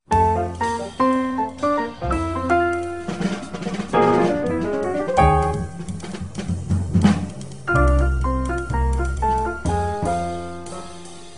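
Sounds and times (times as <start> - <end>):
musical trio: 0.0 - 11.3.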